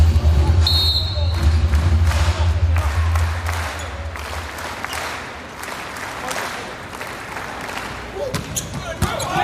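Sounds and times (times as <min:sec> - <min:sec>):
crowd applause and cheering at a men's volleyball match: 0:00.2 - 0:08.2
volleyball ace serve ball thumps: 0:08.2 - 0:09.4.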